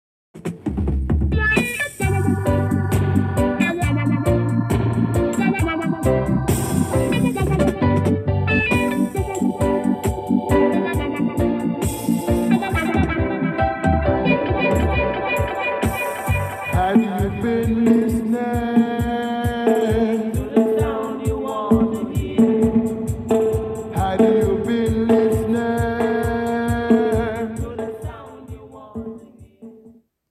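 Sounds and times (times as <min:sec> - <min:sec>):
dubwise music with words: 0:00.4 - 0:30.0.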